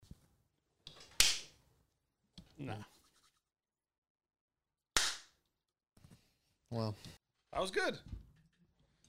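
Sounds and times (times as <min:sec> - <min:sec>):
speech: 0:02.6 - 0:03.0, 0:06.7 - 0:08.2
hand clap: 0:05.0 - 0:05.3.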